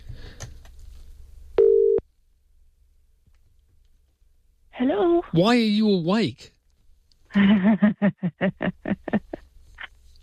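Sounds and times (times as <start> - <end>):
outgoing call ringing tone: 1.6 - 2.0
speech: 4.8 - 6.6, 7.3 - 9.4
laughter: 7.3 - 9.4.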